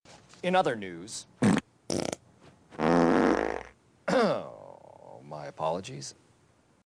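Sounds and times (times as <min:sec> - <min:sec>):
fart: 0:01.4 - 0:02.2, 0:02.8 - 0:03.8
person apologizing: 0:04.1 - 0:05.5.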